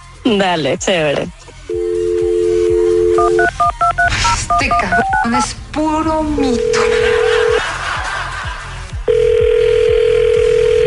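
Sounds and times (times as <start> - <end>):
speech: 0.2 - 1.5, 3.2 - 7.4
telephone dial tone: 1.7 - 4.1, 9.1 - 10.8
two-pitch telephone keypad beeps: 3.2 - 5.4
laughter: 6.7 - 9.1.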